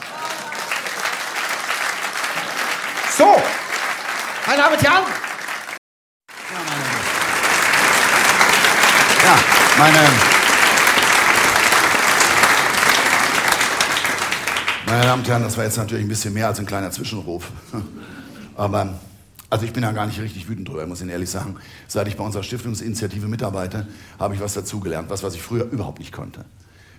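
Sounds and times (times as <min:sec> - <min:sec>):
audience applause: 0:00.0 - 0:15.6
speech: 0:04.5 - 0:05.2, 0:09.8 - 0:10.3, 0:14.9 - 0:26.6.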